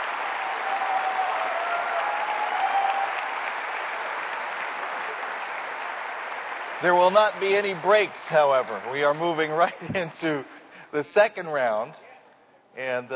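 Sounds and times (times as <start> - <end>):
audience applause: 0.0 - 10.3
speech: 6.8 - 12.0, 12.8 - 13.1.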